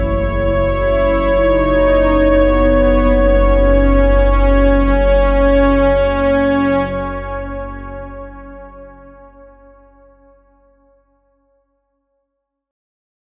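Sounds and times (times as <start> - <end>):
musical sting: 0.0 - 10.0.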